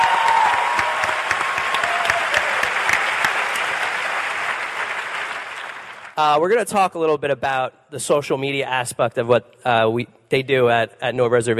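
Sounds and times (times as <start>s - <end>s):
audience applause: 0.0s - 6.2s
speech: 6.2s - 11.5s.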